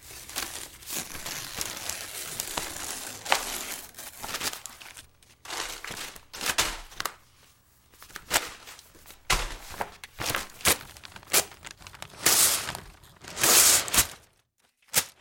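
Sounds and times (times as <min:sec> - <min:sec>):
paper rustling: 0:00.0 - 0:15.1.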